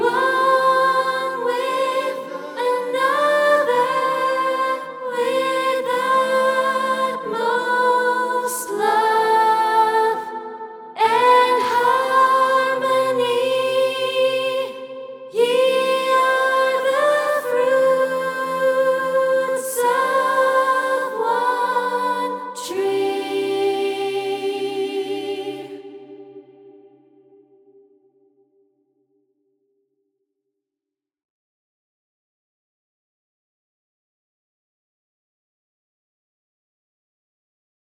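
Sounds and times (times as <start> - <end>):
soprano singing: 0.0 - 26.8.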